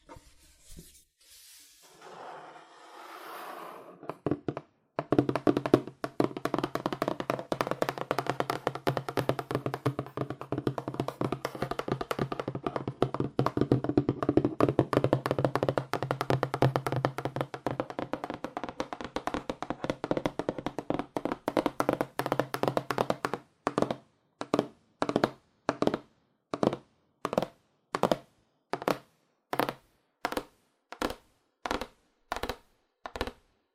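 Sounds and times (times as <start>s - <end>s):
rustling and shuffling: 0.0s - 1.9s
fast aggressive tapping on cardboard: 4.2s - 33.4s.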